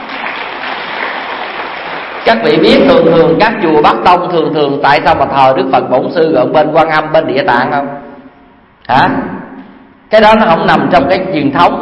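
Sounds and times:
audience applause: 0.0s - 2.4s
speech: 2.3s - 8.0s, 8.9s - 9.3s, 10.1s - 11.8s.

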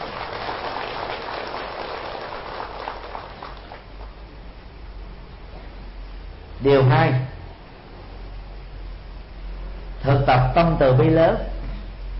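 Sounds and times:
audience applause: 0.0s - 4.2s
speech: 6.6s - 7.3s, 10.3s - 11.5s.

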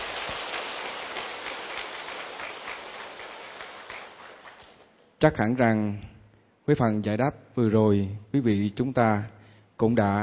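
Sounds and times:
crowd applauding: 0.0s - 4.9s
speech: 5.2s - 6.1s, 6.7s - 10.2s.

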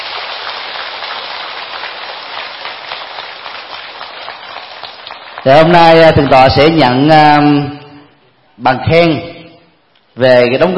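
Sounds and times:
crowd applause: 0.0s - 6.3s
speech: 5.4s - 7.8s, 8.6s - 9.4s, 10.2s - 10.7s.

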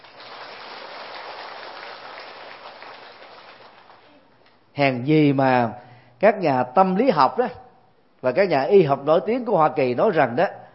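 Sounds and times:
audience applause in a lecture hall: 0.0s - 4.2s
speech: 4.8s - 7.6s, 8.2s - 10.6s.

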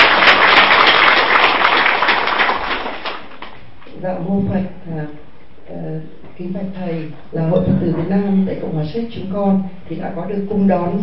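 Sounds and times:
audience applause: 0.0s - 3.6s
speech: 4.0s - 5.3s, 6.4s - 11.0s.

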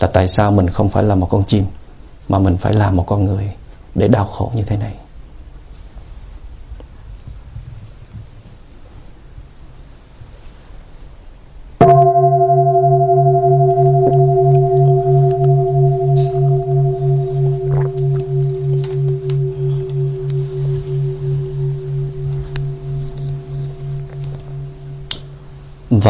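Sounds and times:
speech: 0.0s - 5.0s
single deep bell ringing: 11.8s - 26.0s.

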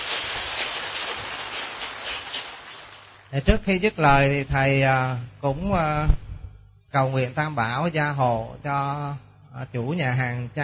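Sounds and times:
audience applause: 0.0s - 3.0s
speech: 3.3s - 6.2s, 6.9s - 10.6s.

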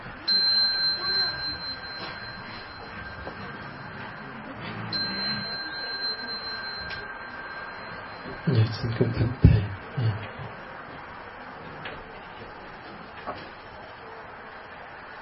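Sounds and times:
low murmur: 0.0s - 15.2s
Buddhist temple chime khánh struck: 0.1s - 9.8s
speech: 8.5s - 10.2s.

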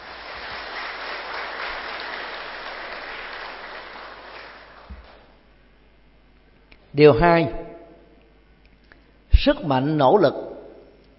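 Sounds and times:
crowd clapping: 0.0s - 5.4s
speech: 7.0s - 7.6s, 9.4s - 10.5s.

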